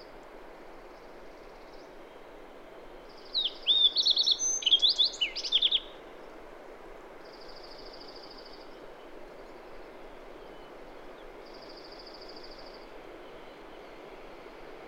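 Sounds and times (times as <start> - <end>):
bird song with whistled slurs and trilled phrases: 3.0 - 6.0, 7.2 - 14.5.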